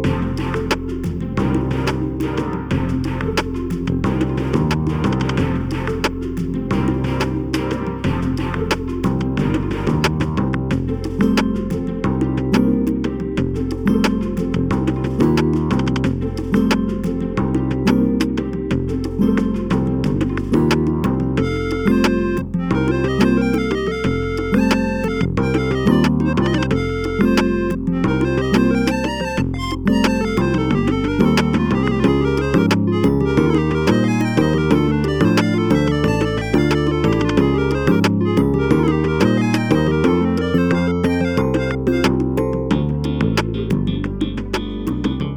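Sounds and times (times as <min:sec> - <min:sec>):
background music: 0:00.0 - 0:45.3.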